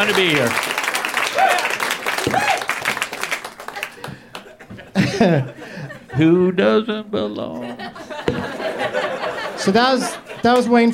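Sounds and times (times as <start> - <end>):
speech: 0.0 - 0.7, 2.2 - 2.6, 5.2 - 5.6, 6.2 - 8.4, 9.6 - 10.9
audience applause: 0.0 - 4.6
laughter: 3.6 - 10.9.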